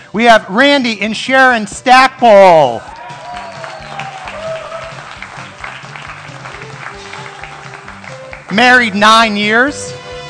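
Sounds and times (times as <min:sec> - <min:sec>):
speech: 0:00.1 - 0:03.0, 0:08.6 - 0:10.0
audience applause: 0:02.9 - 0:08.6.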